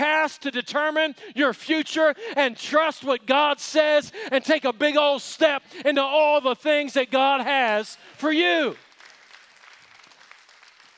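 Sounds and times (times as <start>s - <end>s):
speech: 0.0s - 8.8s
quiet polite audience applause: 8.6s - 10.9s.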